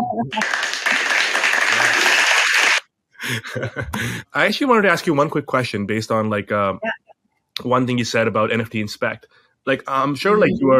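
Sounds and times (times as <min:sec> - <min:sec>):
speech: 0:00.2 - 0:00.7, 0:03.2 - 0:06.9, 0:07.6 - 0:10.7
clapping sound effect: 0:00.3 - 0:02.8
laughter: 0:01.6 - 0:02.4, 0:03.2 - 0:06.4.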